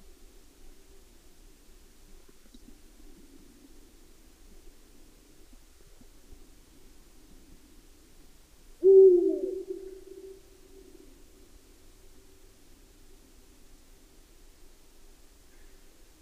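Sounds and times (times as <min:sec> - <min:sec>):
Eurasian eagle-owl hooting: 0:08.8 - 0:11.0.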